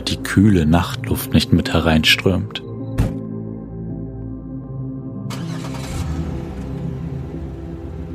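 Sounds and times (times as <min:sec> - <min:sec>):
speech: 0:00.1 - 0:02.6
car door thud: 0:03.0 - 0:03.2
car starting and driving off: 0:05.3 - 0:08.1.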